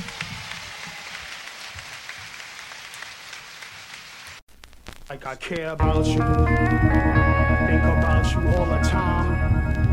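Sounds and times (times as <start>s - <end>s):
audience applause for the band: 0.0s - 4.4s
speech: 5.1s - 9.8s.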